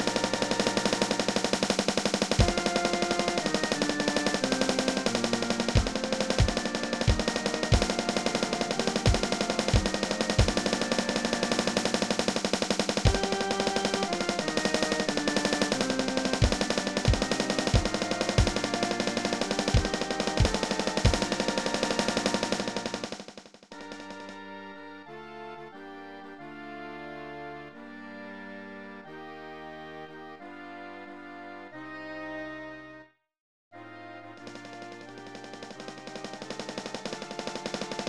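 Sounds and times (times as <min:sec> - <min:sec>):
percussion: 0:00.0 - 0:24.4.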